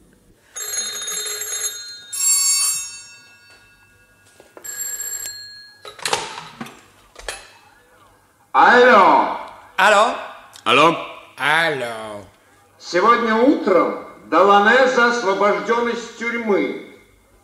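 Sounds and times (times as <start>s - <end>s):
old-style telephone bells ringing: 0.5s - 6.4s
speech: 8.6s - 12.2s, 12.8s - 16.9s.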